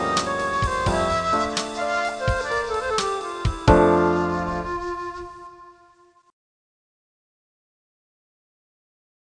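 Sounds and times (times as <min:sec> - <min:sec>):
waltz in a major key: 0:00.0 - 0:06.0.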